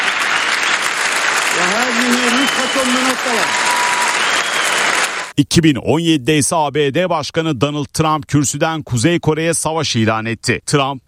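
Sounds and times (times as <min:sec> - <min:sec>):
standing ovation clapping in the UN General Assembly hall: 0:00.0 - 0:05.3
speech: 0:01.9 - 0:03.7, 0:05.4 - 0:11.0.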